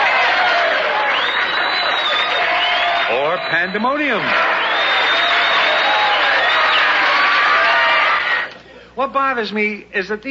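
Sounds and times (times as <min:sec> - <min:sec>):
canned audience applause: 0:00.0 - 0:08.5
whistles: 0:01.0 - 0:04.0, 0:04.6 - 0:07.0
speech: 0:03.4 - 0:04.5, 0:09.0 - 0:10.2.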